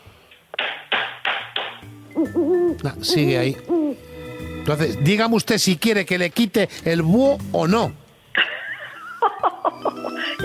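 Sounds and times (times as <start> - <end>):
hand claps to scare an owl: 0.6 - 1.9
speech: 2.2 - 4.0, 4.7 - 8.0
laughter: 8.4 - 10.4.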